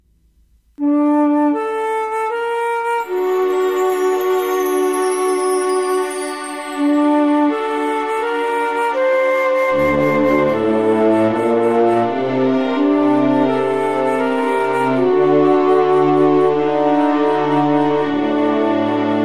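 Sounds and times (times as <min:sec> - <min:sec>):
orchestra test: 0:00.8 - 0:19.2.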